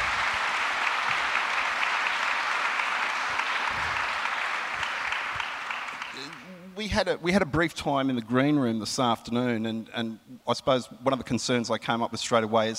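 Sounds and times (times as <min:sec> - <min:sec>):
audience clapping welcoming panellists at a public discussion: 0:00.0 - 0:06.6
speech: 0:06.8 - 0:12.7.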